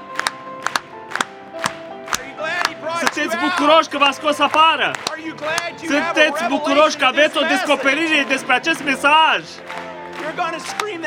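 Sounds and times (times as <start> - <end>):
congregation clapping during a church service: 0.0 - 11.0
laughter: 1.6 - 11.0
speech: 3.1 - 11.0.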